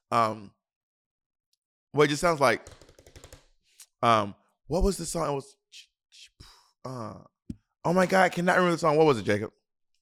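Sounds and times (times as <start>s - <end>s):
speech: 0.1s - 0.6s, 2.0s - 2.8s, 4.0s - 9.6s
typing on a computer keyboard: 2.6s - 3.5s.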